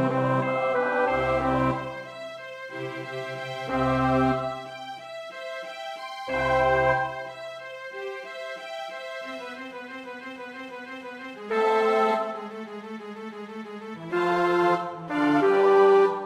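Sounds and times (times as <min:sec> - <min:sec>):
bass: 0:00.0 - 0:04.7, 0:06.2 - 0:07.6, 0:14.0 - 0:16.2.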